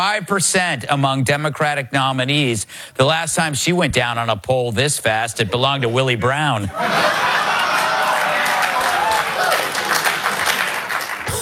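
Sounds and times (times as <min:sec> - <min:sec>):
speech: 0:00.0 - 0:07.6
laughter: 0:05.5 - 0:11.4
audience applause after a joke: 0:06.8 - 0:11.4.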